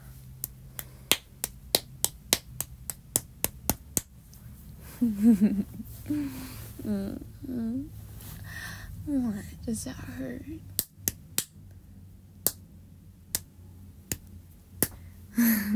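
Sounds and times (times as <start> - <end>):
low hum: 0.0 - 15.7
light sharp spanking slaps: 0.4 - 4.4, 10.8 - 11.6, 14.1 - 15.0
speech: 5.0 - 8.0, 9.0 - 10.7, 15.4 - 15.7.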